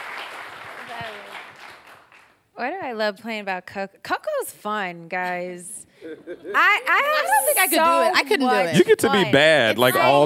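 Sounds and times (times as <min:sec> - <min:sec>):
audience clapping: 0:00.0 - 0:02.4
speech: 0:02.6 - 0:10.2.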